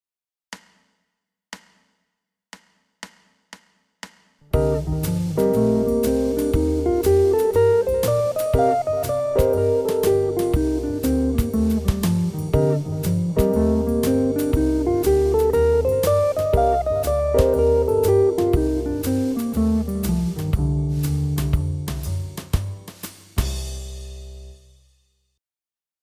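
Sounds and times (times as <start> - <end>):
guitar in Phrygian mode: 4.6 - 22.3.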